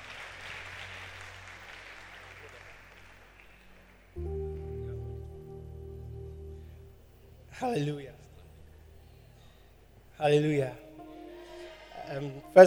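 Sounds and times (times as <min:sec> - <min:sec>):
audience clapping: 0:00.0 - 0:04.7
speech: 0:07.6 - 0:08.2, 0:10.2 - 0:10.8, 0:12.1 - 0:12.6.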